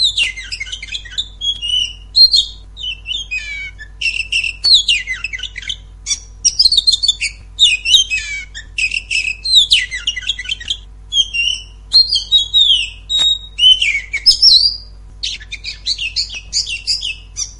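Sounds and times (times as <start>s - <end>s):
Oriental magpie-robin scratchy song: 0.0s - 17.5s.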